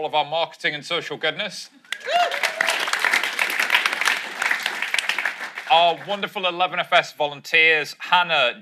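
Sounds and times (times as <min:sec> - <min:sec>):
speech: 0:00.0 - 0:02.7, 0:05.7 - 0:08.5
audience applause: 0:01.9 - 0:06.3.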